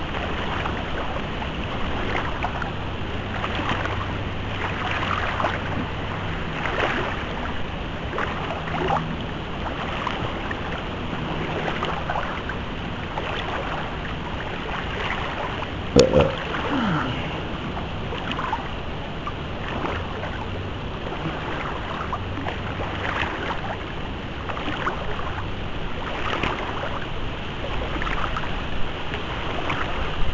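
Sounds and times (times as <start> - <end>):
wild swimming splashes and strokes in the Charente river: 0.1 - 18.9, 19.6 - 30.2.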